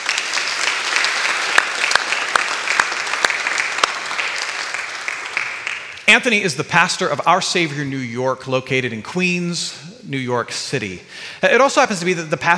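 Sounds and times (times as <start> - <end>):
church congregation at St. Mark applauding a visiting pastor: 0.0 - 6.5
speech: 6.1 - 12.5.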